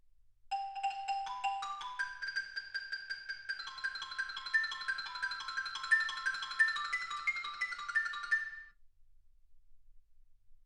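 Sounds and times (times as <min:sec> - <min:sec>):
xylophone: 0:00.5 - 0:08.7.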